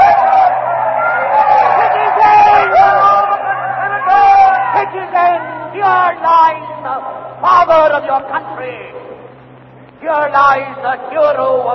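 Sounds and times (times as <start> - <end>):
frenzied crowd shouting: 0.0 - 7.7
speech: 10.1 - 11.7.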